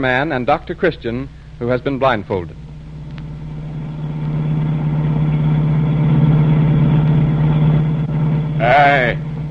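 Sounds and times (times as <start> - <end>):
speech: 0.0 - 2.6, 8.6 - 9.4
car engine running while driving: 2.6 - 9.4.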